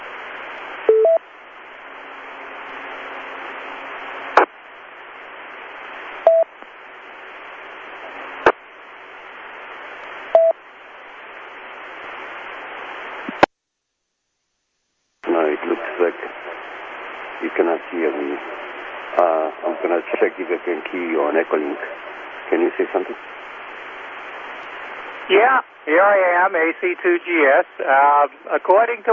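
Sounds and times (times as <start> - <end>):
amateur radio transmission static: 4.1 - 6.7, 7.5 - 8.7, 9.4 - 13.5, 15.2 - 29.1
voice speaking over the radio channel: 15.2 - 16.6, 17.4 - 23.2, 25.3 - 29.1
speech: 26.9 - 29.1.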